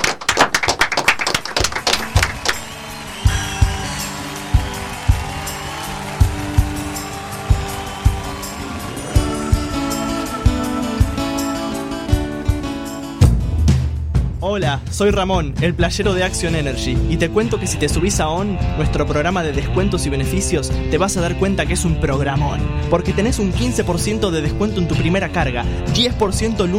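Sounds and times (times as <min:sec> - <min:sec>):
brisk dense clapping: 0:00.0 - 0:09.5
rhythmic hand claps: 0:00.0 - 0:11.9
loud music with a steady thumping beat and sustained tones: 0:02.1 - 0:17.2
speech: 0:14.6 - 0:26.7.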